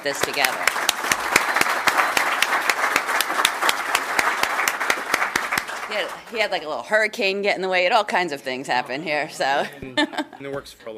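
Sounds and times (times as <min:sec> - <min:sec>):
speech: 0:00.0 - 0:01.1, 0:05.9 - 0:10.9
audience applause: 0:00.0 - 0:06.5.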